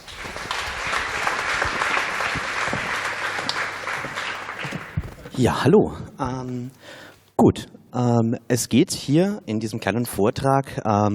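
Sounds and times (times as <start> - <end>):
audience applause: 0.0 - 5.4
speech: 5.4 - 6.8, 7.4 - 11.1.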